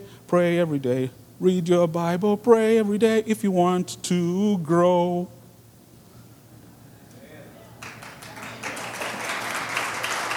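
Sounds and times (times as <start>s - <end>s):
speech: 0.3s - 5.4s
audience clapping: 7.8s - 10.3s.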